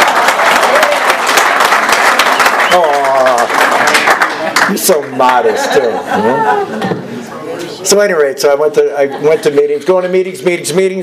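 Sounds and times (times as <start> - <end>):
audience applause: 0.0 - 5.5
speech: 2.8 - 11.0
laughter: 4.4 - 7.2, 8.8 - 9.8.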